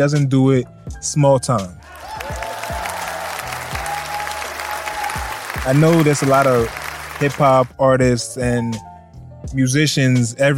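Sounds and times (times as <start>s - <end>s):
speech: 0.0s - 2.3s, 5.6s - 8.9s, 9.5s - 10.5s
crowd applause: 1.8s - 7.7s.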